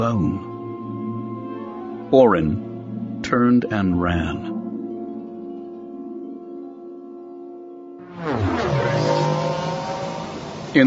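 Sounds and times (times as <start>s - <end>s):
speech: 0.0s - 0.5s, 2.1s - 4.5s
sustained music in an audio drama: 0.0s - 10.8s
Star Wars speeder bikes rocketing away: 8.0s - 10.8s.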